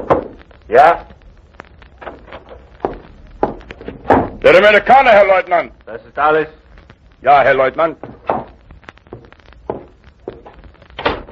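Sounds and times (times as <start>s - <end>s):
speech: 0.7s - 1.1s, 4.4s - 6.6s, 7.2s - 8.1s
soft shuffling footsteps: 1.6s - 4.6s, 7.8s - 10.9s.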